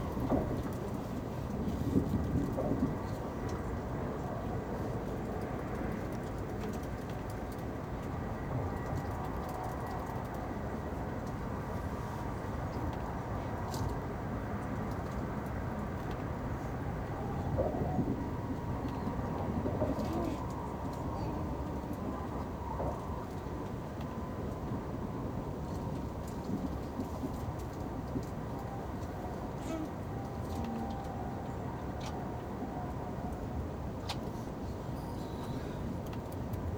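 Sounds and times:
train interior ambience: 0:00.0 - 0:36.7.

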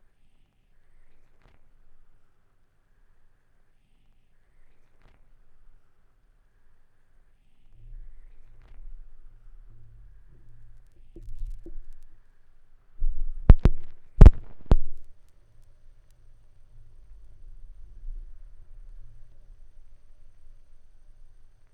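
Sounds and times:
vinyl record noise: 0:07.8 - 0:12.4, 0:13.0 - 0:21.7.

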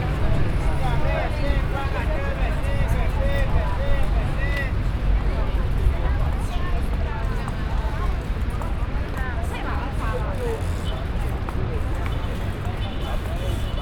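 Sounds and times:
street ambience in Brazil: 0:00.0 - 0:13.8.

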